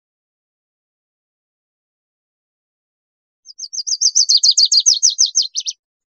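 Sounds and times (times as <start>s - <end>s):
Lucy's warbler trill: 3.5s - 5.8s.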